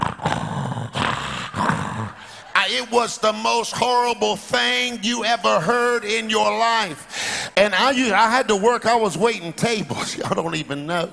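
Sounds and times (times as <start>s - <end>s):
voice imitating loud snoring: 0.0s - 2.3s
speech: 2.7s - 11.1s.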